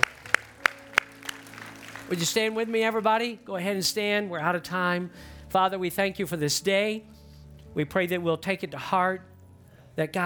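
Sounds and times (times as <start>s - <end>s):
audience clapping: 0.0s - 3.5s
speech: 2.1s - 9.3s, 10.0s - 10.2s.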